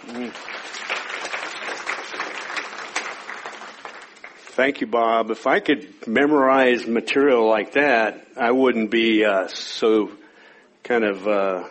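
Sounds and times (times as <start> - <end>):
speech: 0.0 - 0.6, 4.6 - 10.2, 10.9 - 11.7
audience applauding to welcome a speaker: 0.0 - 4.6.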